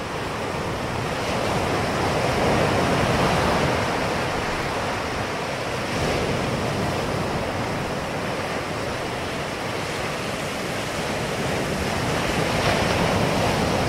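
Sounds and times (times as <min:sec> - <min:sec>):
ocean waves crashing: 0:00.0 - 0:13.8.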